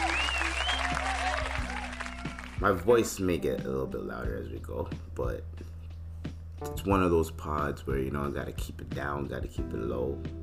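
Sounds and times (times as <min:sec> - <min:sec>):
faint whistling tones: 0:00.0 - 0:01.0
crowd applause: 0:00.0 - 0:02.8
speech: 0:02.6 - 0:05.7, 0:06.6 - 0:10.4.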